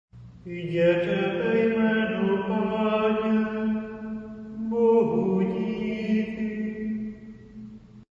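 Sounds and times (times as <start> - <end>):
choral singing: 0.5 - 7.7.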